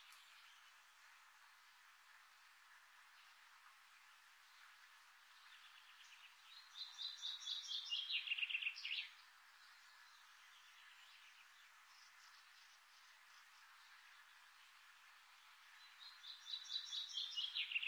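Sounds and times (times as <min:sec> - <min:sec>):
birds singing in the morning: 0:05.4 - 0:13.1, 0:15.8 - 0:17.8.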